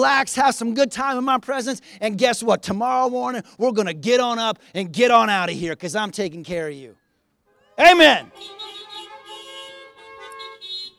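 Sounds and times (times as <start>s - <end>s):
speech: 0.0s - 7.0s, 7.8s - 8.6s
car horn honking: 7.5s - 10.9s.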